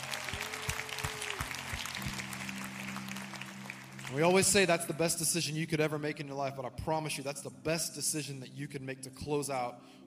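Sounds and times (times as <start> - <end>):
congregation applauding in a church: 0.0 - 5.4
speech: 4.1 - 10.0.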